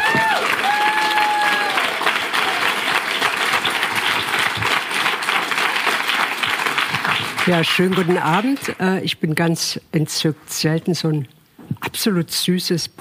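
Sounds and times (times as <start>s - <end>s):
audience applause: 0.0s - 8.8s
speech: 7.5s - 12.9s.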